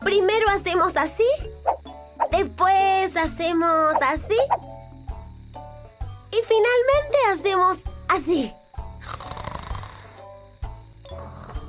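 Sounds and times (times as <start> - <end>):
speech: 0.1 - 1.5, 2.4 - 4.8, 6.3 - 8.6
voice imitating the snoring of a sleeping anteater: 9.0 - 10.2, 11.1 - 11.6.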